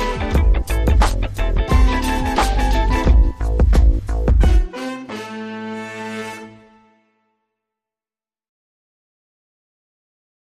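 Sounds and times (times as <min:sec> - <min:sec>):
1970s funk music: 0:00.0 - 0:06.8.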